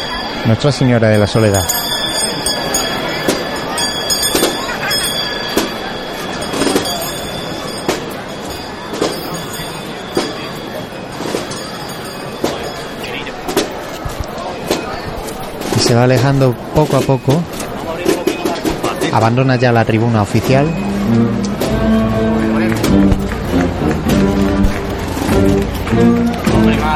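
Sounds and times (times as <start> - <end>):
murmur of voices: 0.0 - 26.9
procession herald ringing hand bells: 0.0 - 26.9
speech: 0.4 - 1.8, 15.9 - 17.6, 19.1 - 21.4.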